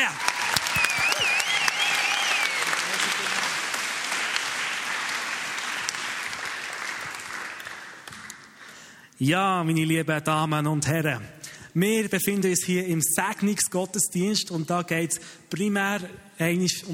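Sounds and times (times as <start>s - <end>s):
cheers and whistles: 0.0s - 3.2s
audience applause: 0.0s - 8.8s
speech: 9.2s - 16.9s.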